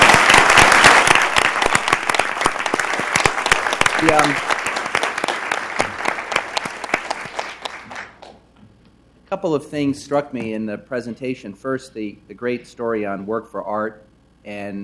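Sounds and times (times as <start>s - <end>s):
audience applause: 0.0s - 8.3s
speech: 4.0s - 4.6s, 9.3s - 14.8s.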